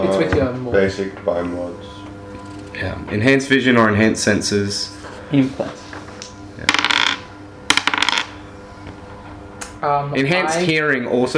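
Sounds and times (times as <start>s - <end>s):
speech: 0.0s - 2.0s, 2.8s - 5.8s, 9.8s - 11.3s
dice clattering: 6.7s - 8.3s.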